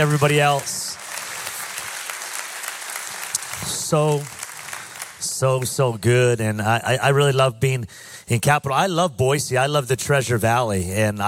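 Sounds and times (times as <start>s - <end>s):
speech: 0.0s - 0.8s, 3.9s - 4.4s, 5.4s - 11.2s
audience clapping: 0.0s - 6.1s.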